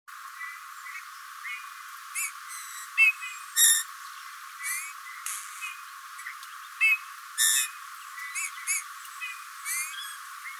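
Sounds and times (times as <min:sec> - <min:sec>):
Eurasian bullfinch calls: 0:02.2 - 0:03.9, 0:04.6 - 0:10.5.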